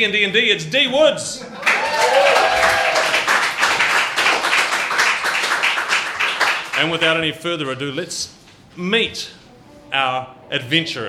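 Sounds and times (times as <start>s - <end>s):
speech: 0.0s - 2.4s, 6.8s - 11.0s
round of applause: 1.5s - 7.0s.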